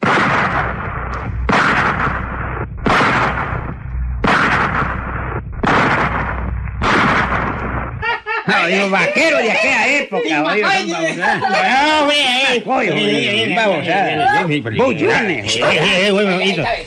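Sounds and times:
pistol gunshots: 0.0s - 8.0s
laughter: 8.0s - 16.8s
speech: 8.6s - 16.8s.

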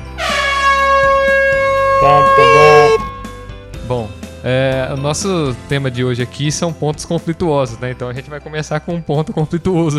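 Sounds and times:
horn sound effect: 0.0s - 3.6s
speech: 2.0s - 2.4s, 3.9s - 9.9s.

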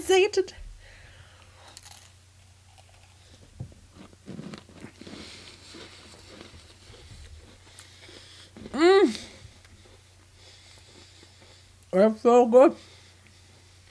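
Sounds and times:
speech: 0.0s - 0.6s, 8.8s - 9.2s, 11.9s - 13.0s
sugar cookie dipped in topping being bitten and chewed: 1.4s - 11.9s.

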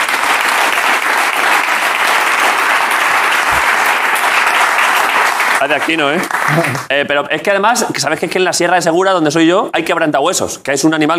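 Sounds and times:
audience applause: 0.0s - 6.9s
speech: 5.6s - 11.1s.

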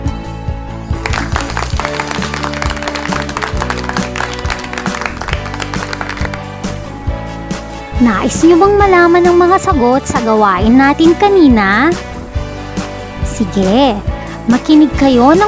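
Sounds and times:
applause: 0.9s - 6.6s
speech: 8.0s - 12.1s, 13.4s - 15.4s.

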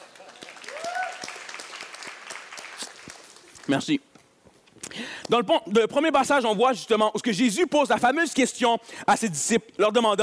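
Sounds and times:
audience applause: 0.0s - 3.8s
speech: 3.7s - 4.1s, 5.3s - 10.2s.

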